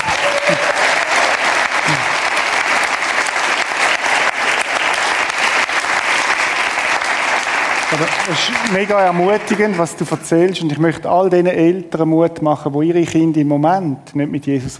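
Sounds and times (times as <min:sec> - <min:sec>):
audience applause: 0:00.0 - 0:10.7
speech: 0:08.3 - 0:14.7.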